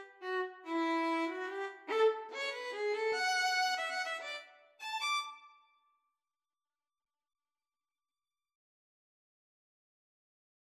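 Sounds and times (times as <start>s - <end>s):
violin and cello duet: 0.0s - 5.2s.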